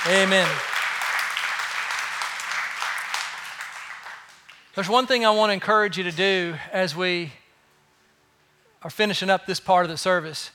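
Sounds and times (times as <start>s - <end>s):
crowd clapping: 0.0s - 5.0s
speech: 0.1s - 0.7s, 4.8s - 7.4s, 8.8s - 10.5s.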